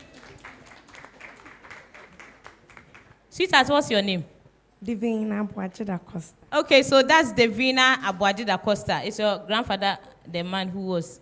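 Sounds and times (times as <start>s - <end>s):
audience clapping: 0.0s - 3.3s
speech: 3.4s - 11.2s.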